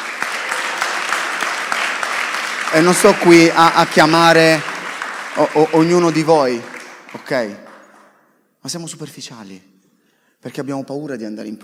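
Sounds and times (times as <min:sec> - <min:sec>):
crowd applauding: 0:00.0 - 0:08.2
speech: 0:02.7 - 0:04.7, 0:05.4 - 0:06.7, 0:07.3 - 0:07.6, 0:08.6 - 0:09.7, 0:10.4 - 0:11.6.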